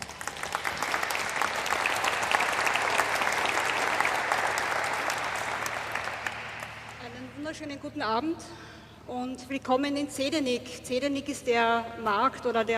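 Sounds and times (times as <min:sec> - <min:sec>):
audience applause: 0:00.0 - 0:07.0
speech: 0:07.5 - 0:12.7.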